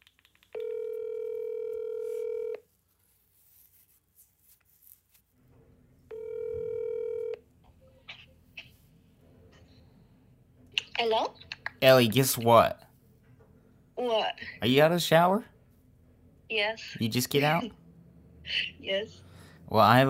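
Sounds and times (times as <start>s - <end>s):
phone call electronic ring tones: 0.6s - 2.6s, 6.1s - 7.4s
speech: 11.0s - 12.8s, 14.6s - 15.5s, 16.6s - 17.8s, 18.5s - 20.0s.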